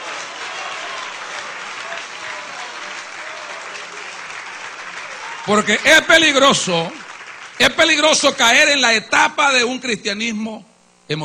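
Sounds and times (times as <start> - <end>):
audience applauding: 0.0 - 9.0
speech: 5.5 - 7.0, 7.6 - 11.2.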